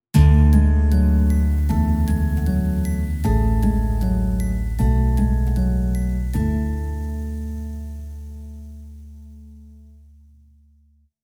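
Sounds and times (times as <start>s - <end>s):
ident jingle: 1.1s - 8.9s.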